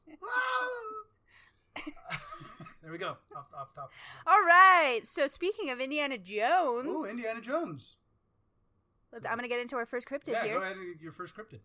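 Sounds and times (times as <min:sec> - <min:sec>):
Wilhelm scream sound effect: 0:00.2 - 0:01.0
speech: 0:02.9 - 0:08.0, 0:09.1 - 0:11.6.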